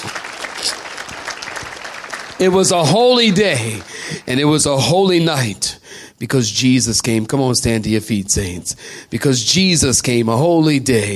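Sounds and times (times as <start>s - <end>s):
audience clapping hands: 0.0s - 5.4s
speech: 2.4s - 11.1s.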